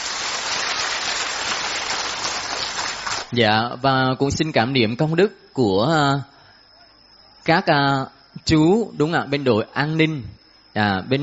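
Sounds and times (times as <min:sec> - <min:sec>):
big round of applause: 0:00.0 - 0:03.4
speech: 0:03.3 - 0:06.3, 0:07.4 - 0:11.2.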